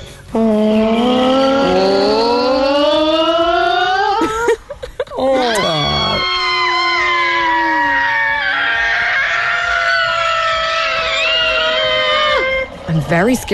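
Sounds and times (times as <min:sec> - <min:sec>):
family screaming as vocal effects for a dinosaur ride: 0:00.4 - 0:04.4, 0:05.2 - 0:13.5.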